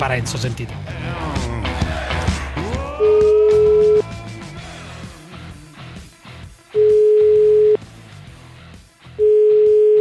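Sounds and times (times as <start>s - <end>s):
busy music: 0.0s - 9.9s
telephone line tone of an outgoing call: 6.8s - 7.8s, 9.2s - 9.9s.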